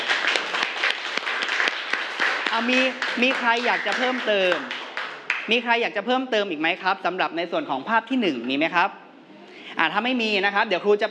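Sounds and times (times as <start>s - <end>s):
classroom applause: 0.0s - 5.5s
speech: 2.6s - 4.8s, 5.5s - 9.0s, 9.7s - 11.0s.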